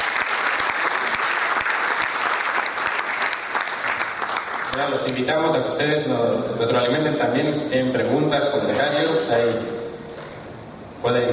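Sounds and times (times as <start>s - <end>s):
applause from a group: 0.0s - 5.3s
speech: 4.8s - 9.8s, 11.0s - 11.3s.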